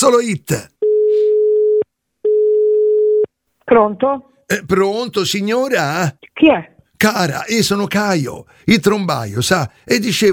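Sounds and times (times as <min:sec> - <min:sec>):
speech: 0:00.0 - 0:00.7, 0:03.7 - 0:10.3
telephone line tone on an Italian radio phone-in: 0:00.8 - 0:03.3.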